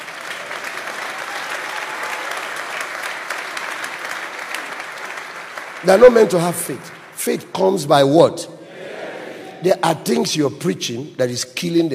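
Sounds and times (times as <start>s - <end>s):
audience applause: 0.0s - 7.4s
speech: 5.8s - 8.6s, 9.6s - 11.9s.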